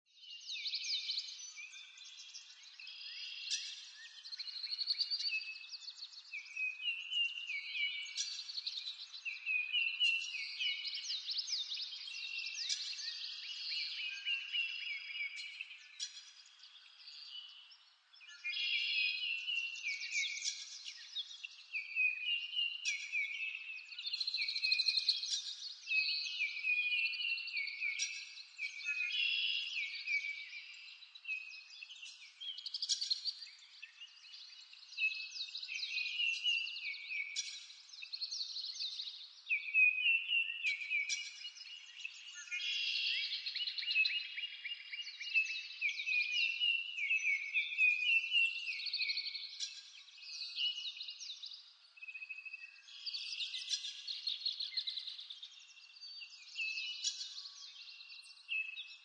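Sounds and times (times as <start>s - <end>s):
birds on a farm in the morning: 0.0s - 59.0s.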